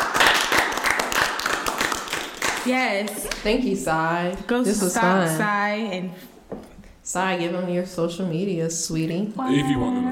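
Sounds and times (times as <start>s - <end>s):
round of applause: 0.0s - 2.7s
speech: 2.6s - 6.3s, 7.1s - 10.1s.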